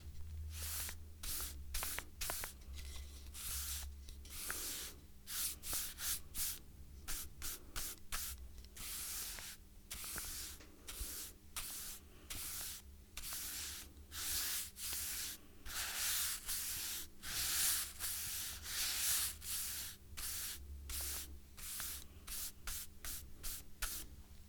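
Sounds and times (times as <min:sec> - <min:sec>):
paint brush stroking: 0:00.5 - 0:24.1.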